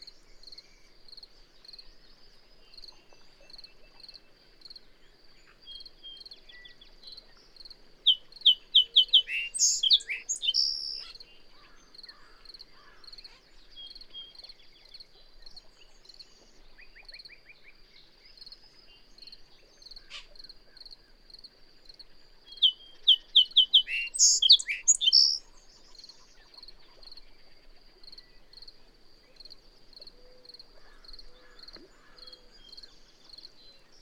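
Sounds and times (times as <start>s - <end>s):
bird song burst of quick notes and whistles: 8.1s - 11.1s, 22.5s - 25.5s.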